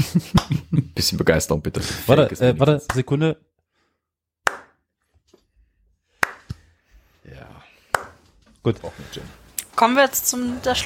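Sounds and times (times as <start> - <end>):
laughter: 0.0 - 1.1
speech: 0.0 - 3.5, 8.6 - 10.8
slow hand clapping: 0.2 - 0.6, 4.4 - 4.8, 6.2 - 6.7, 7.9 - 8.3.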